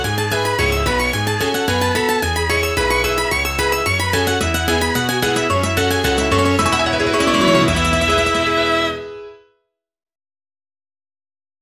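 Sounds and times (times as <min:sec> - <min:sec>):
Beijing Opera qupai tune: 0:00.0 - 0:09.2.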